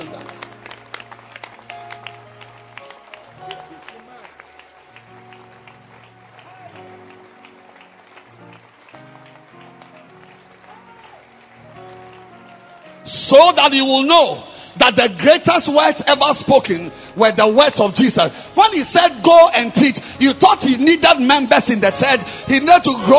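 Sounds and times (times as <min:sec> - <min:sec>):
audience clapping: 0:00.0 - 0:14.1
speech: 0:13.3 - 0:23.1.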